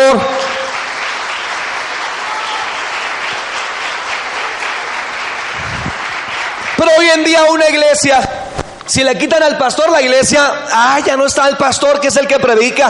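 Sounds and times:
church audience applause: 0:00.0 - 0:07.9
speech: 0:06.9 - 0:08.3, 0:08.9 - 0:12.8.

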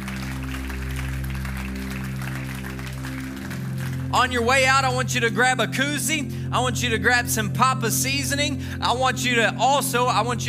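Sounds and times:
audience clapping hands: 0:00.0 - 0:05.0
speech: 0:04.1 - 0:10.4.

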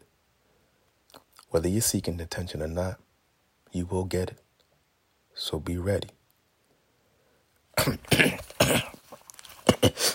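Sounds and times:
speech: 0:01.5 - 0:03.1, 0:03.7 - 0:04.4, 0:05.4 - 0:06.2, 0:07.8 - 0:08.8
person with a parched throat clearing throat and coughing: 0:07.8 - 0:10.1.

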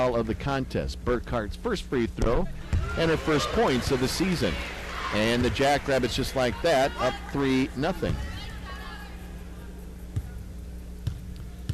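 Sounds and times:
speech: 0:00.0 - 0:08.3
arena hum: 0:00.0 - 0:11.7
basketball dribbled at the free-throw line in a women's college game: 0:02.2 - 0:03.1, 0:05.2 - 0:05.7, 0:08.0 - 0:08.6, 0:11.0 - 0:11.7.

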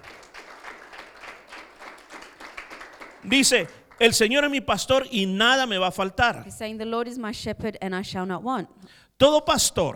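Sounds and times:
crowd applause: 0:00.0 - 0:04.6
speech: 0:03.2 - 0:09.9.

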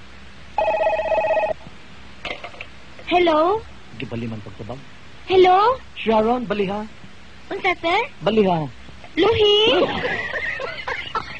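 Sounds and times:
telephone ringing with electronic trill: 0:00.6 - 0:01.6
speech: 0:03.1 - 0:10.4
laughter: 0:09.6 - 0:11.3.

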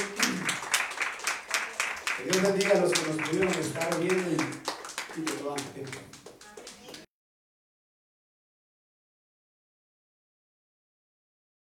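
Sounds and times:
audience clapping as an offering: 0:00.0 - 0:07.1
speech: 0:02.2 - 0:06.2.

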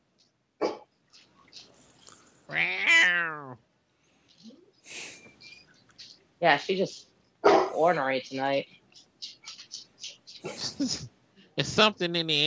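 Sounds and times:
cat growling yowl: 0:02.5 - 0:03.6
speech: 0:02.5 - 0:03.6, 0:06.4 - 0:07.1, 0:07.8 - 0:08.8, 0:11.6 - 0:12.4
laughter: 0:10.4 - 0:11.0, 0:11.6 - 0:12.4.

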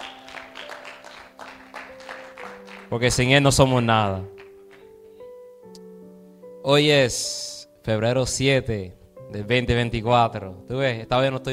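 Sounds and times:
church congregation applauding: 0:00.0 - 0:05.0
speech: 0:02.9 - 0:04.4, 0:06.7 - 0:11.5.

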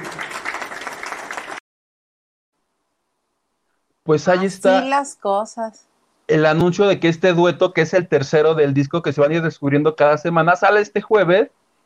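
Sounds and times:
audience applause: 0:00.0 - 0:01.6
speech: 0:04.1 - 0:11.6.

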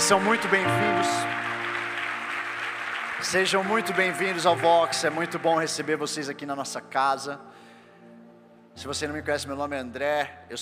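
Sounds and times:
audience applause: 0:00.0 - 0:06.0
speech: 0:00.1 - 0:01.5, 0:03.2 - 0:07.6, 0:08.8 - 0:10.6.

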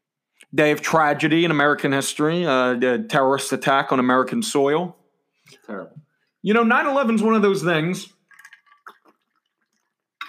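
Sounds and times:
speech: 0:00.5 - 0:08.2
person drinking water: 0:08.2 - 0:10.2.

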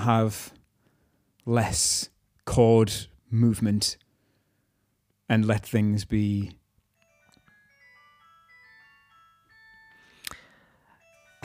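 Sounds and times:
speech: 0:00.0 - 0:00.6, 0:01.4 - 0:04.0, 0:05.3 - 0:06.6
mobile phone ringtone with electronic beeping melody: 0:07.0 - 0:11.4.

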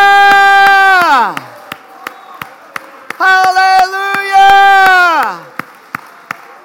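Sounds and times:
shouts of praise: 0:00.0 - 0:01.5, 0:03.2 - 0:05.5
audience clapping in rhythm: 0:00.0 - 0:06.6.

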